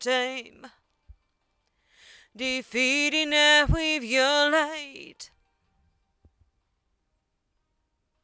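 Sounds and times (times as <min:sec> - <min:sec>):
female vocals: 0:00.0 - 0:00.8, 0:02.3 - 0:05.3.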